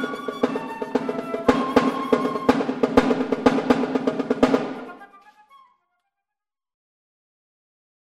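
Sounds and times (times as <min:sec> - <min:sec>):
percussion: 0:00.0 - 0:05.6.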